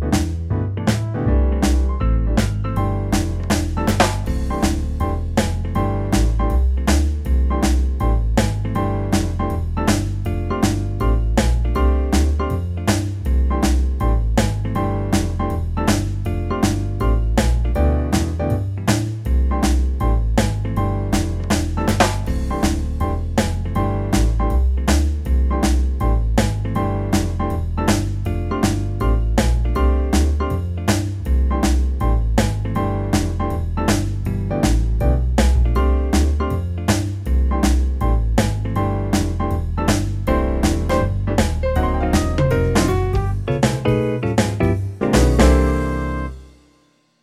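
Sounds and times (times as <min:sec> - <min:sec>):
acoustic jazz music with rhythms: 0:00.0 - 0:46.8.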